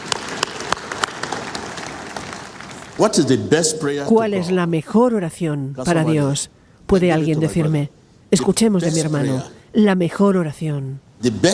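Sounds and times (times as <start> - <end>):
audience applause: 0.0 - 3.0
speech: 3.0 - 11.5.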